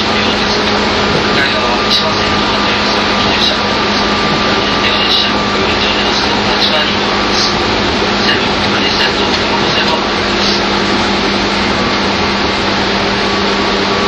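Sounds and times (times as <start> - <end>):
faint murmuring voices on train: 0.0 - 14.0
fixed whining tones of train: 0.0 - 14.0
train rumble on a ride from Tokyo to Takao: 0.0 - 14.0.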